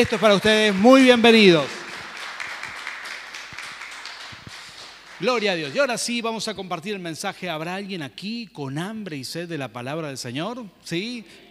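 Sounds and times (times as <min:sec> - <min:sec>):
speech: 0:00.0 - 0:01.8, 0:05.2 - 0:11.4
audience applause: 0:00.0 - 0:06.0.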